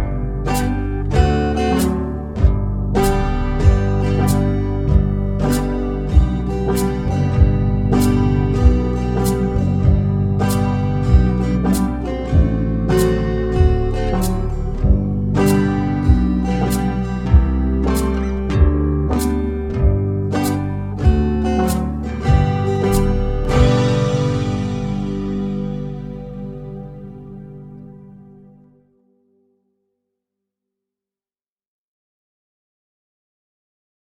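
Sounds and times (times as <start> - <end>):
backing track in the key of G: 0.0 - 28.8.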